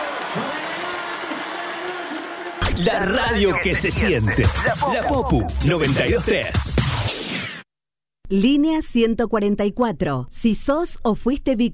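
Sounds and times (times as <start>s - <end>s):
applause: 0.0s - 2.8s
speech: 0.4s - 0.6s, 2.8s - 6.7s, 8.3s - 11.7s
laughter: 3.2s - 6.6s.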